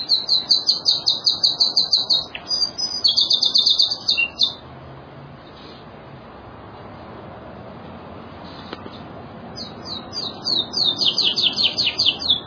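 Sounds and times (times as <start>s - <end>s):
songbird singing trills and chattering phrases: 0.0s - 4.7s, 8.4s - 12.4s.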